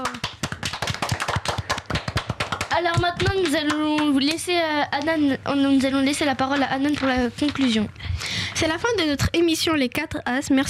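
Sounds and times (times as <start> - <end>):
small group clapping on a French children's quiz show: 0.0 - 5.2
speech: 2.8 - 10.6.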